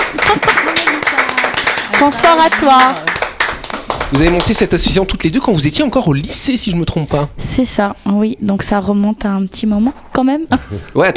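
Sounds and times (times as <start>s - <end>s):
applause: 0.0s - 5.0s
laughter: 0.1s - 2.2s
speech: 2.0s - 3.2s, 4.1s - 11.1s.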